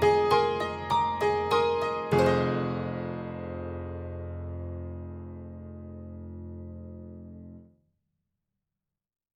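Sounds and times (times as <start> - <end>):
tack piano ballad on an upright piano: 0.0 - 7.6.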